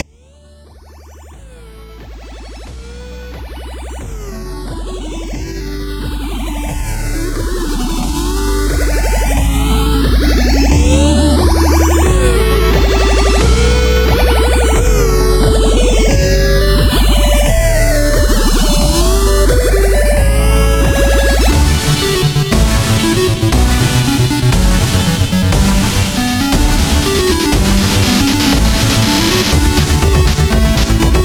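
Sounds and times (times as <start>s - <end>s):
8-bit chiptune: 0.0s - 31.2s.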